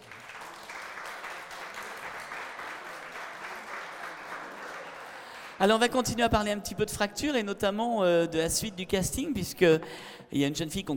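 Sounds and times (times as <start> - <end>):
audience applause: 0.0 - 5.6
speech: 5.6 - 10.9.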